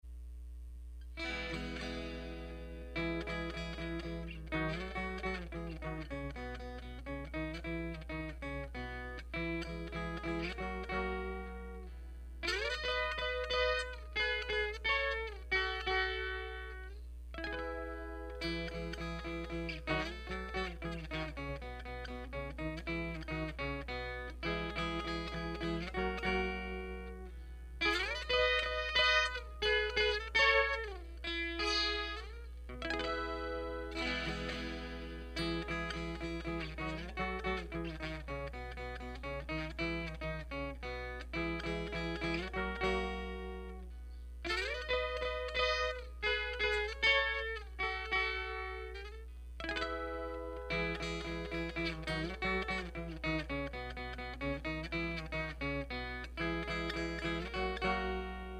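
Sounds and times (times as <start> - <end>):
instrumental music: 1.0 - 58.5.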